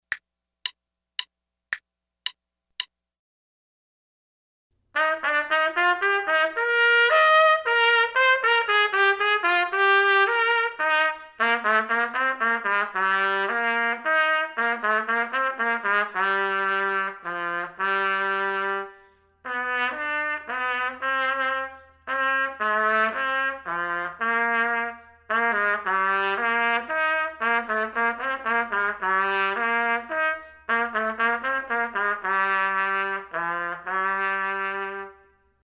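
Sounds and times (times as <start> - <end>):
trumpet: 4.9 - 35.5.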